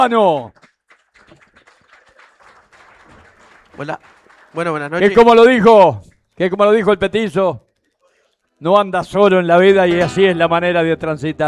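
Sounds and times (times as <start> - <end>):
speech: 0.0 - 0.7, 3.8 - 7.7, 8.6 - 11.4
crowd applause: 0.0 - 5.9.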